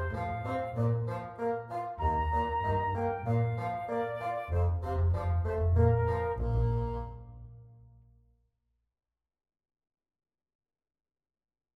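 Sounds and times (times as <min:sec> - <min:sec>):
clarinet played live: 0:00.0 - 0:08.0.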